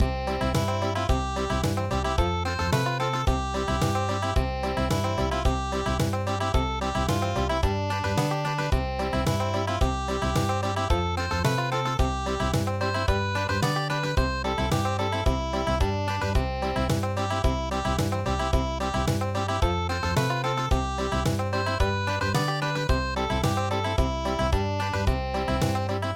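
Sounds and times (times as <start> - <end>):
country midi music: 0.0 - 26.1.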